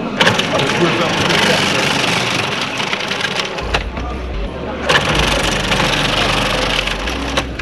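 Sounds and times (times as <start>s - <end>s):
cabbage being shredded in food processor: 0.2s - 3.7s, 4.9s - 7.5s.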